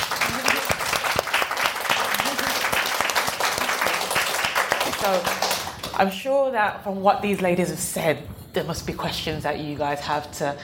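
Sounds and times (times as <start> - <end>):
audience applause: 0.0 - 5.9
speech: 5.0 - 5.4, 6.0 - 10.6.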